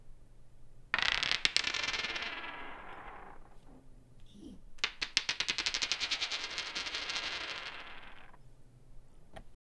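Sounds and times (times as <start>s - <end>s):
dice rolling on poll table: 0.9s - 3.7s, 4.8s - 8.4s.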